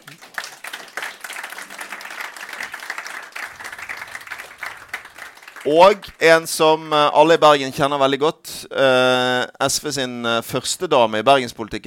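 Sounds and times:
audience applause: 0.0 - 6.2
speech: 5.6 - 11.8.

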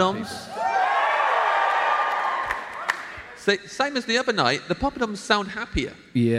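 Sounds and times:
speech: 0.0 - 0.6, 3.4 - 6.3
people cheering: 0.0 - 3.4.

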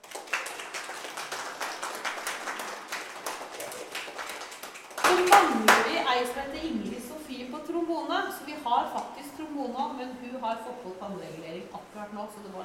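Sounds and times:
audience applause: 0.0 - 6.0
speech: 5.4 - 12.6.

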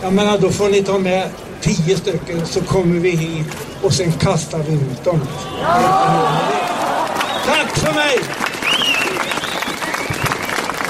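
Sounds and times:
speech: 0.0 - 6.6, 7.4 - 8.4
audience applause: 6.2 - 10.8.

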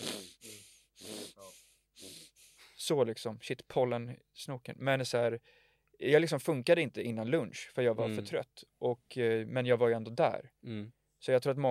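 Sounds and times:
voice imitating heavy tired breathing: 0.0 - 2.8
speech: 2.9 - 11.6.

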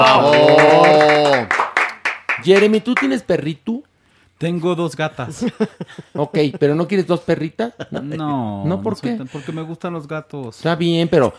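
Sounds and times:
applause: 0.0 - 3.2
speech: 2.4 - 11.3
laughter: 5.2 - 6.9, 7.7 - 9.7.

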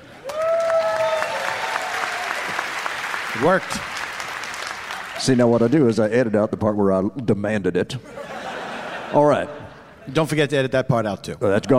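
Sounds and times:
audience applause: 0.0 - 5.5
high-pitched cheer: 0.2 - 3.6
speech: 3.4 - 3.9, 5.2 - 8.2, 9.1 - 11.7
laughter: 8.0 - 10.3.

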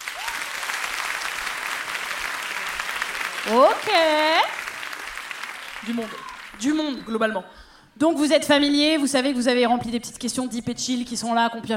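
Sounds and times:
audience applause: 0.0 - 6.8
speech: 3.4 - 4.6, 5.8 - 11.7.

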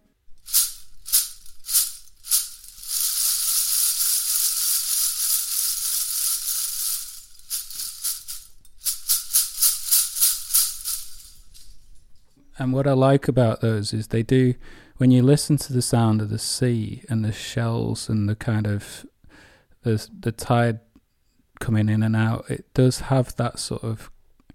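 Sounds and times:
percussion shaker made of recycled bottle tops rattling: 0.3 - 12.3
speech: 12.6 - 19.1, 19.8 - 20.9, 21.6 - 24.2.

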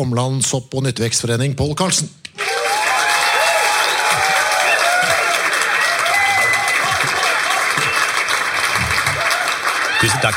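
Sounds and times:
speech: 0.0 - 2.5, 10.0 - 10.3
whoops and cheers: 2.4 - 8.2, 9.0 - 10.3
live audience applause: 2.4 - 10.3.

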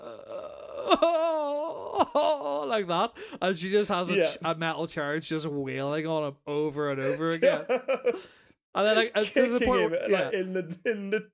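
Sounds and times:
person imitating a stifled whimpering cry: 0.0 - 2.9
speech: 0.9 - 1.4, 2.0 - 11.3
laughter: 7.1 - 8.3.

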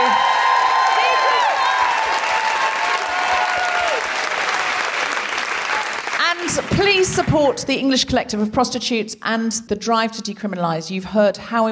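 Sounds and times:
audience applause: 0.0 - 7.5
speech: 6.8 - 11.6.

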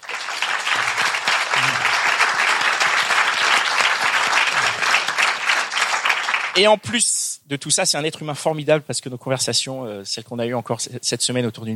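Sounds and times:
audience applause: 0.0 - 6.6
speech: 6.6 - 11.7.

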